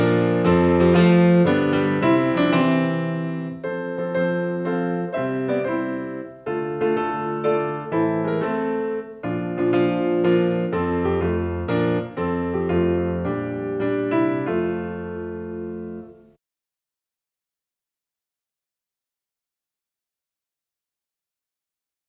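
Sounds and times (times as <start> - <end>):
piano through Eventide H3000 chamber effect: 0.0 - 16.4.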